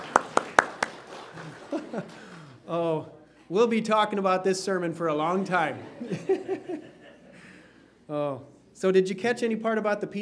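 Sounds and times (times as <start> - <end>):
church congregation hand claps during a sermon: 0.0 - 2.5
laughter: 1.3 - 2.5, 5.3 - 7.5
speech: 1.9 - 6.3, 8.1 - 10.2.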